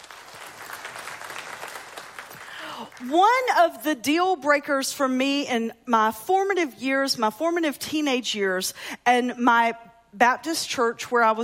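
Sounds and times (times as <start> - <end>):
audience clapping: 0.0 - 3.2
speech: 2.8 - 11.4.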